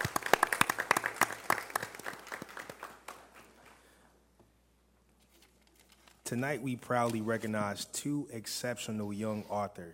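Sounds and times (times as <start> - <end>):
round of applause: 0.0 - 4.0
speech: 6.3 - 9.9.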